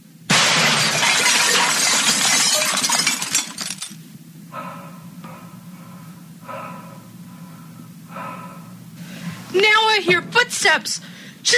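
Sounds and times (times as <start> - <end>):
bathroom mirror glass shattering: 0.3 - 4.0
speech: 10.1 - 11.5.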